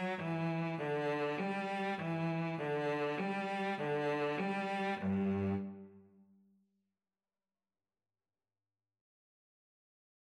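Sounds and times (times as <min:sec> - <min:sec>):
viola and cello duet playing a national anthem: 0:00.0 - 0:06.0.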